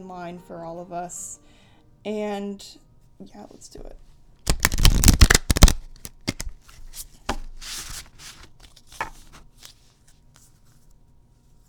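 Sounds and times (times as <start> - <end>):
speech: 0.0 - 4.1
oracle cards being shuffled: 4.5 - 10.6.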